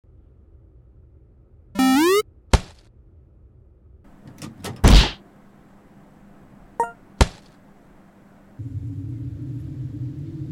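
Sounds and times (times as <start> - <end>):
power jump sound effect: 1.8 - 2.2.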